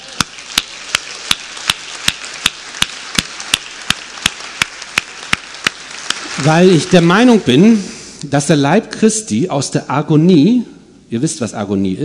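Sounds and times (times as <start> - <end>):
audience clapping hands: 0.0 - 7.8
speech: 6.4 - 12.0.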